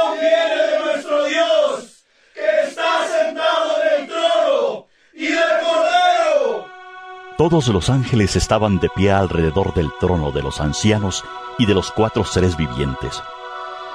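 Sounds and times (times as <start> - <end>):
great crowd shouting loudly: 0.0 - 6.6
speech: 7.4 - 13.4.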